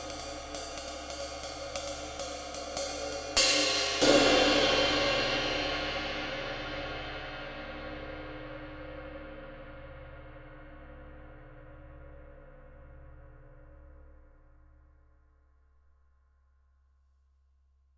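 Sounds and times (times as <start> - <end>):
22-inch ride cymbal: 0.0 - 12.8.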